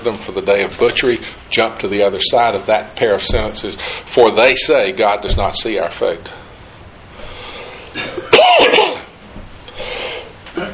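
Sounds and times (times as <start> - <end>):
speech: 0.0 - 6.4
person coughing: 7.9 - 9.1, 10.6 - 10.7.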